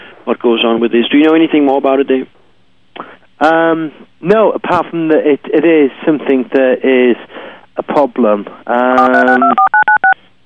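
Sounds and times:
speech: 0.2 - 2.4, 3.0 - 9.8
telephone dialing beeps: 9.0 - 10.2.

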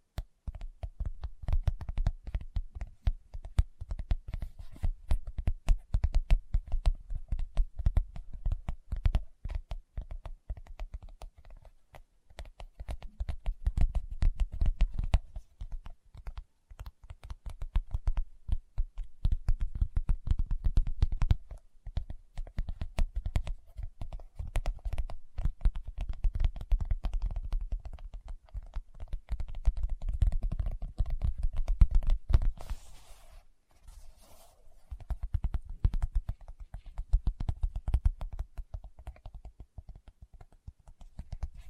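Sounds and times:
fingertips tapping rapidly: 0.1 - 41.6.

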